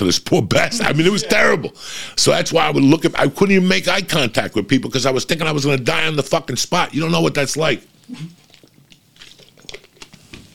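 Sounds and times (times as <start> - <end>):
speech: 0.0 - 8.4
plastic water bottle crinkling while drinking: 8.0 - 10.5.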